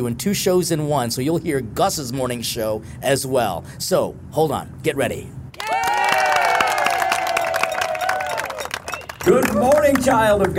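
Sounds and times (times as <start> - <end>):
speech: 0.0 - 5.4, 9.3 - 10.5
audience applause: 5.6 - 10.5
sustained tonal whistle: 7.4 - 9.4.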